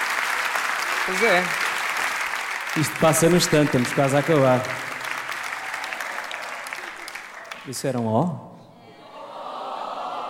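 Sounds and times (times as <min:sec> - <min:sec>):
audience applause: 0:00.0 - 0:07.9
speech: 0:01.0 - 0:01.6, 0:02.8 - 0:04.9, 0:07.7 - 0:08.5.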